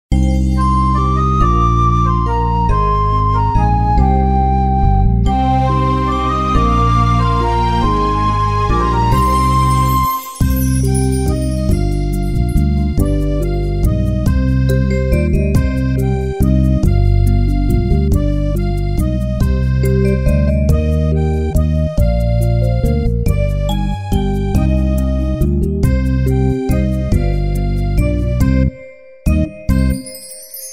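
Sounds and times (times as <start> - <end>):
instrumental music: 0.1 - 30.7.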